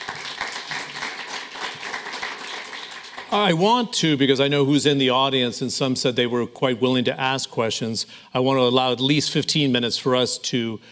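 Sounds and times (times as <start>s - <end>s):
audience applause welcoming a panel of chief economists at a growth summit: 0.0s - 3.6s
speech: 3.3s - 10.9s.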